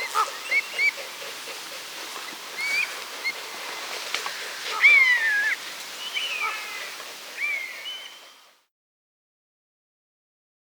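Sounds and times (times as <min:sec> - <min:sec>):
bird song of whistled slurs and warbled phrases: 0:00.0 - 0:01.1, 0:04.8 - 0:08.4.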